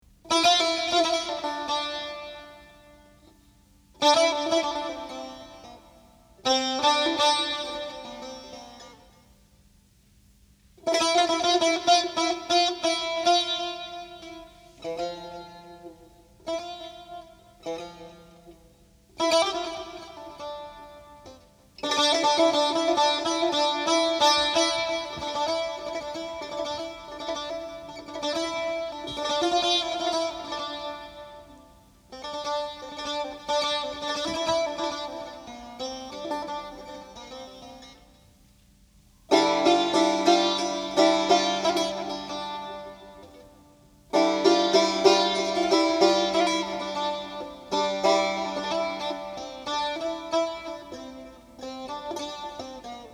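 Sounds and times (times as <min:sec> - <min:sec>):
saz playing: 0:00.0 - 0:09.3, 0:10.8 - 0:53.1.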